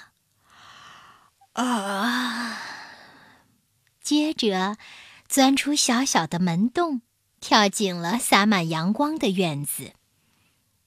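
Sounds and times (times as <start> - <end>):
person yawning: 1.5 - 2.8
speech: 1.6 - 2.1, 4.1 - 10.0.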